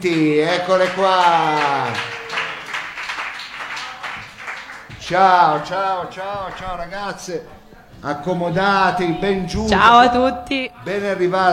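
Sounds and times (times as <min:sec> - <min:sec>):
speech: 0:00.0 - 0:02.1, 0:05.1 - 0:11.5
audience applause for guests: 0:00.0 - 0:07.7.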